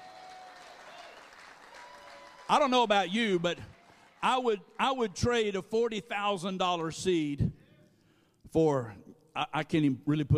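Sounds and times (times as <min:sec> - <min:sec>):
faint audience applause: 0:00.0 - 0:04.3
speech: 0:02.5 - 0:07.6, 0:08.5 - 0:10.3.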